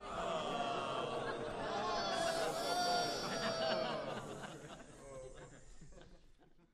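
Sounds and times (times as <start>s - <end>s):
small crowd booing indoors: 0.0s - 4.9s
small crowd hissing indoors: 0.0s - 6.0s
laughter: 0.0s - 6.7s.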